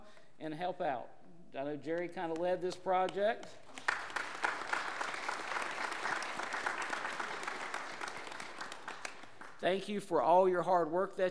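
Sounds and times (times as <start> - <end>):
speech: 0.4 - 3.7, 9.6 - 11.3
audience applause: 3.6 - 9.6.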